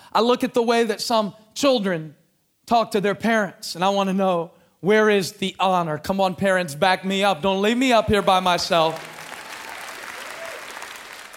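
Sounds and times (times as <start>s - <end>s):
speech: 0.1s - 9.1s
audience clapping: 8.1s - 11.3s.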